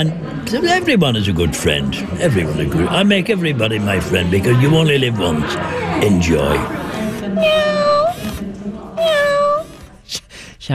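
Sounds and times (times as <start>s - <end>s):
speech: 0.0s - 8.0s, 10.1s - 10.7s
robotic cat meowing: 7.1s - 8.4s, 9.0s - 9.9s.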